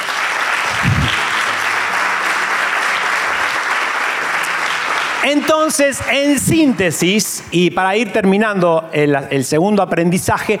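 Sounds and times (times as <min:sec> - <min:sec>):
audience applause: 0:00.0 - 0:07.0
speech: 0:05.2 - 0:10.5.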